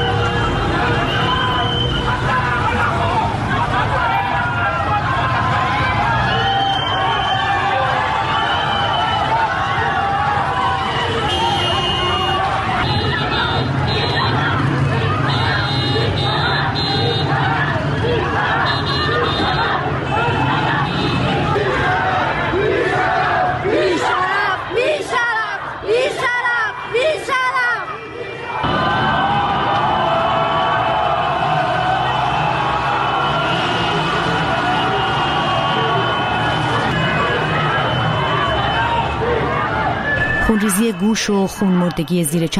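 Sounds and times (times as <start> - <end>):
car horns: 0.0 - 2.2, 10.9 - 17.5, 18.3 - 21.6, 32.4 - 39.0
street protest crowd at Argentina Square by Kasra Hospital: 0.0 - 42.5
speech: 41.2 - 42.5.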